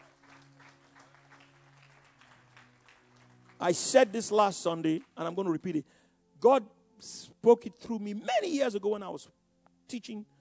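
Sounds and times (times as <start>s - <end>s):
audience clapping: 0.0s - 5.6s
speech: 3.6s - 10.3s.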